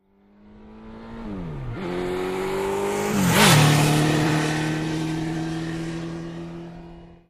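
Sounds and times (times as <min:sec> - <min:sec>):
Kawasaki 750 motorcycle passing fast: 0:00.0 - 0:07.2.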